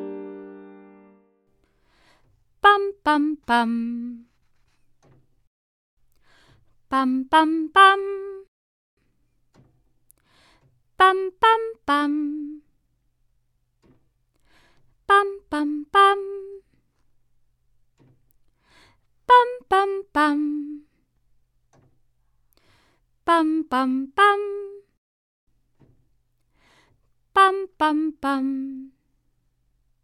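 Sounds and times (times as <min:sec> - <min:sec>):
person singing minor mode patterns on a neutral syllable: 0:02.6 - 0:04.3, 0:06.9 - 0:08.5, 0:11.0 - 0:12.7, 0:15.0 - 0:16.7, 0:19.2 - 0:21.0, 0:23.2 - 0:24.9, 0:27.3 - 0:29.0.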